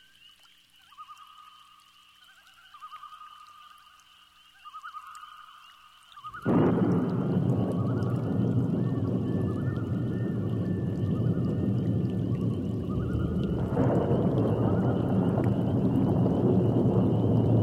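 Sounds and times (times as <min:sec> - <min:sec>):
thunderstorm: 0:06.3 - 0:17.6.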